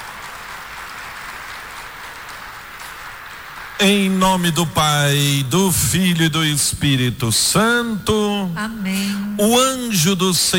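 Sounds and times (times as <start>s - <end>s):
crowd applause: 0.0s - 5.8s
speech: 3.8s - 10.5s.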